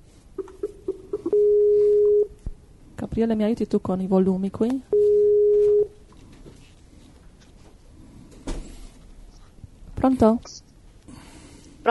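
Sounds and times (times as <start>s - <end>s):
Skype call connecting tone: 0.4s - 2.3s, 4.9s - 6.0s
speech: 3.2s - 4.9s, 10.1s - 10.7s.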